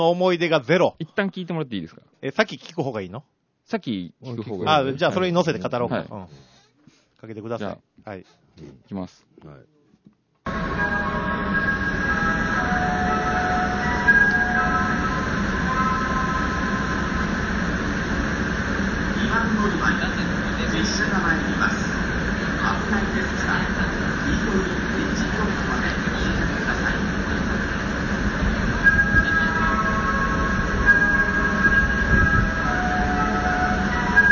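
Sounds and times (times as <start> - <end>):
speech: 0.0 - 6.5, 7.2 - 9.8
train station departure melody: 10.5 - 34.3.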